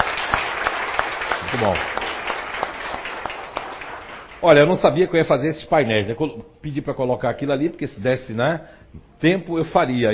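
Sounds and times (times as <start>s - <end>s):
audience applause: 0.0s - 4.5s
speech: 1.6s - 2.0s, 4.4s - 10.1s.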